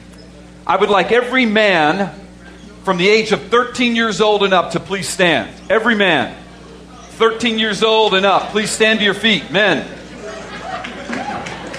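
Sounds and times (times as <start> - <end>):
speech: 0.7 - 2.2, 2.8 - 6.4, 7.2 - 10.0
laughter: 6.4 - 11.7
audience clapping: 10.0 - 11.7.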